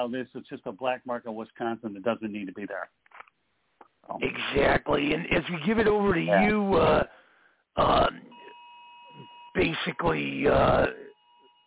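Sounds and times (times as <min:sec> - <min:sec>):
speech: 0:00.0 - 0:03.2, 0:04.0 - 0:07.2, 0:07.8 - 0:08.3, 0:09.6 - 0:11.0
Amber Alert electronic two-tone beep through the phone lines: 0:06.3 - 0:06.6.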